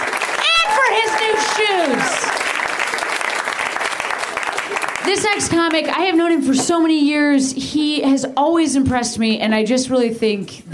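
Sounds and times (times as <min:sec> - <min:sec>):
audience applause: 0:00.0 - 0:06.0
high whoops and cheering voices: 0:00.3 - 0:02.4
speech: 0:01.0 - 0:02.4, 0:05.1 - 0:10.7.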